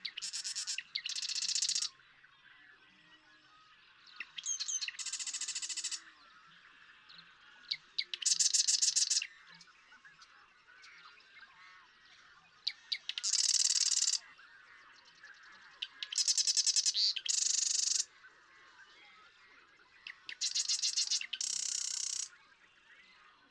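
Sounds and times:
Marsh Wren singing: 0.2 - 1.9, 4.4 - 6.0, 8.2 - 9.3, 13.1 - 14.2, 16.1 - 18.1, 20.3 - 22.3.

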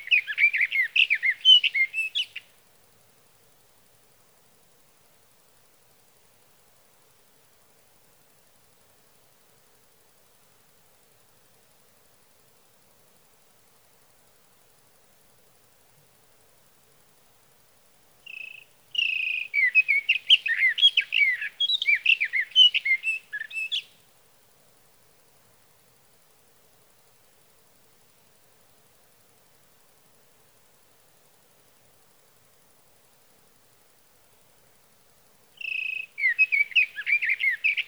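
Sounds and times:
sage thrasher: 0.0 - 2.4, 18.3 - 23.9, 35.6 - 37.8.

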